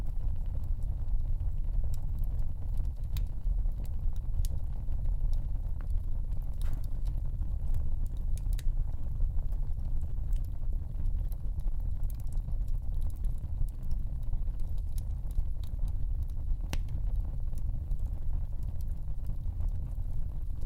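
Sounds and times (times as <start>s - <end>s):
fire burning in a stove: 0.0s - 20.6s.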